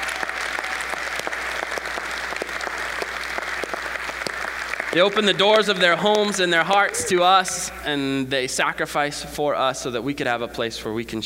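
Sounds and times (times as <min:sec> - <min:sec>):
audience applauding: 0:00.0 - 0:07.7
speech: 0:04.9 - 0:11.2.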